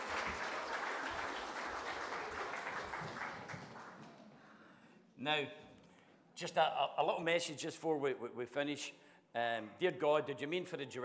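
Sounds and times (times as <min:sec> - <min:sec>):
round of applause: 0:00.0 - 0:04.5
speech: 0:05.2 - 0:05.6, 0:06.4 - 0:11.0.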